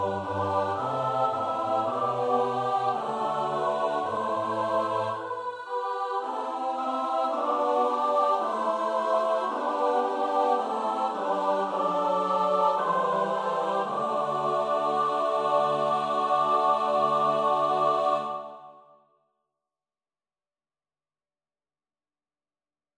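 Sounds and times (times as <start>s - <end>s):
four-part SATB choir singing a psalm: 0.0s - 18.8s.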